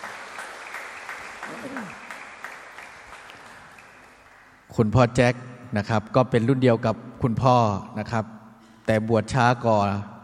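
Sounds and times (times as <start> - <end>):
welcoming applause: 0.0 - 4.7
speech: 1.5 - 2.0, 4.7 - 10.1.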